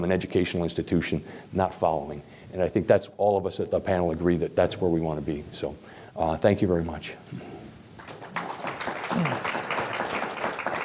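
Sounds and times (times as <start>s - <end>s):
speech: 0.0s - 7.6s, 9.2s - 9.6s
audience applause: 8.0s - 10.8s.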